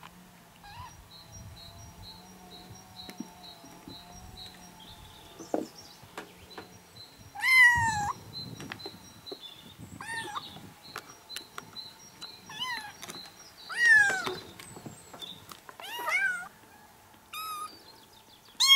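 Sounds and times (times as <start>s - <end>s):
kittens meowing: 0.6s - 1.0s, 7.4s - 8.2s, 10.0s - 10.4s, 12.5s - 12.9s, 13.7s - 14.4s, 15.8s - 16.5s, 18.6s - 18.7s.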